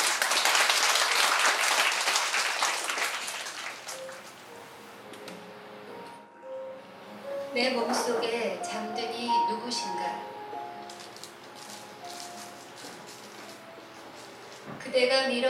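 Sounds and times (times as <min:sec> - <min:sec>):
audience applause: 0:00.0 - 0:04.3
speech: 0:07.6 - 0:10.4, 0:14.9 - 0:15.4.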